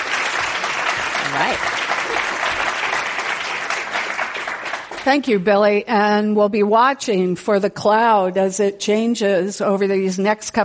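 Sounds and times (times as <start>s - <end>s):
crowd applause: 0.0s - 5.3s
speech: 1.3s - 2.6s, 5.0s - 10.6s.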